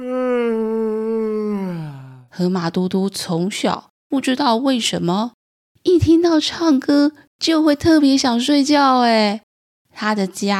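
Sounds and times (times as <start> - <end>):
person yawning: 0.0 - 2.3
speech: 2.4 - 9.4, 10.0 - 10.5.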